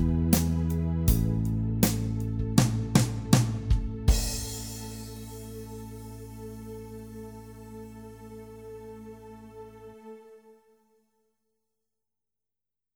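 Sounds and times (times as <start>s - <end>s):
groove jam track: 0.0s - 7.5s.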